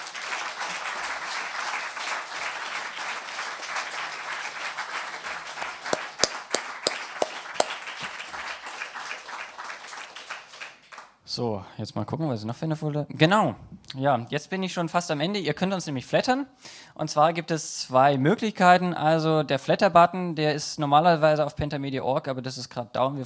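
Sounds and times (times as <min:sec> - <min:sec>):
crowd applauding: 0:00.0 - 0:11.1
speech: 0:11.4 - 0:23.2.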